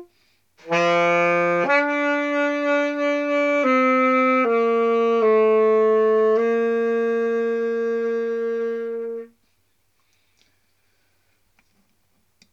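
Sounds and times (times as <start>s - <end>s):
saxophone: 0.0s - 9.4s.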